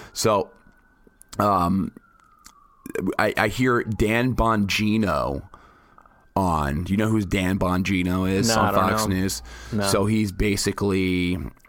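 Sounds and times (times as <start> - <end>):
faint steady siren: 0.0 - 11.6
speech: 0.2 - 0.6, 1.3 - 2.0, 2.9 - 5.5, 6.4 - 11.6.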